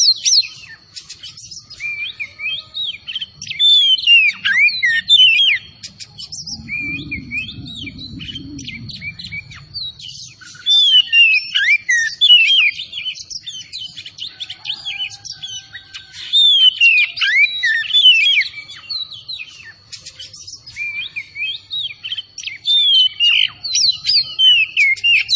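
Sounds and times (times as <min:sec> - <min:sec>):
Oriental magpie-robin singing: 0:00.0 - 0:25.3
low rumbling noise: 0:05.0 - 0:11.2.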